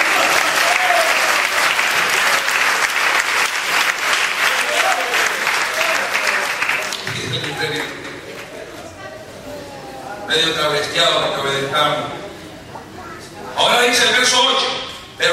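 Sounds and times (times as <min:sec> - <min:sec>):
audience clapping: 0:00.0 - 0:08.7
faint voices calling out: 0:08.2 - 0:15.2.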